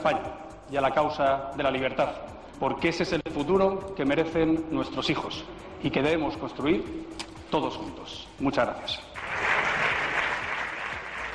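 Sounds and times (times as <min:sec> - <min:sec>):
speech: 0:00.0 - 0:09.2
applause from the parliamentary benches of a political party: 0:09.2 - 0:11.3.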